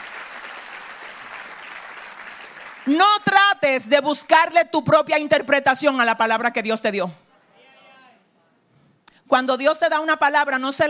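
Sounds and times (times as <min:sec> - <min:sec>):
audience applauding: 0:00.0 - 0:03.0
speech: 0:02.8 - 0:07.2, 0:09.3 - 0:10.8.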